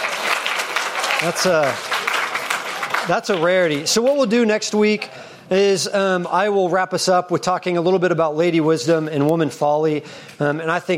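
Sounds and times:
audience applause: 0.0 - 4.2
speech: 1.2 - 1.9, 3.1 - 10.9.

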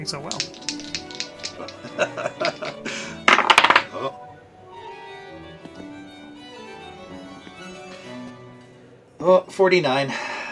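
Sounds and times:
speech: 0.0 - 0.7, 1.6 - 3.2, 3.9 - 4.2, 9.2 - 10.2
dice clattering: 0.2 - 2.7, 3.3 - 3.9
laughter: 1.6 - 3.2.

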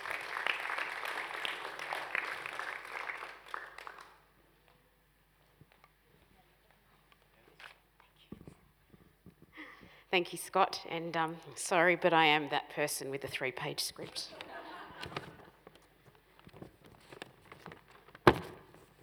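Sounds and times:
audience applause: 0.0 - 4.3
speech: 10.2 - 14.4
laughter: 14.2 - 15.7.

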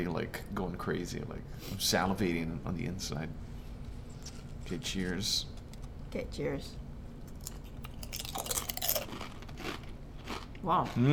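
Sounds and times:
speech: 0.0 - 3.5, 4.7 - 6.8, 10.6 - 11.1
chewing on a brittle wasabi snack: 7.3 - 11.1.

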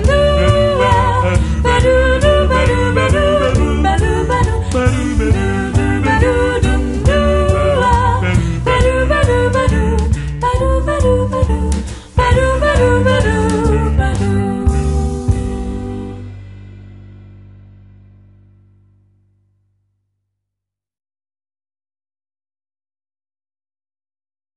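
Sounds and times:
swing instrumental music for SAB choir: 0.0 - 18.1.

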